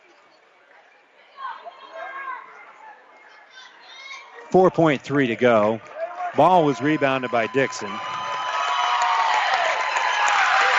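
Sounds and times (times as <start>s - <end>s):
speech: 4.5s - 8.1s
crowd applause in high school gym: 5.3s - 10.7s.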